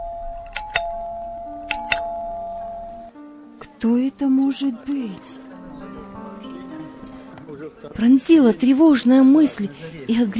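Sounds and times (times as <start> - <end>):
doorbell ringing insistently: 0.0 - 3.2
speech: 3.8 - 5.5, 7.8 - 10.3.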